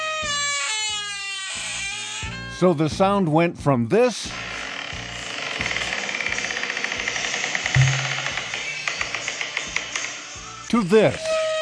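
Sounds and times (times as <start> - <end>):
restroom door creaking open: 0.1 - 2.5, 4.5 - 10.1
speech: 2.6 - 4.5, 10.8 - 11.3.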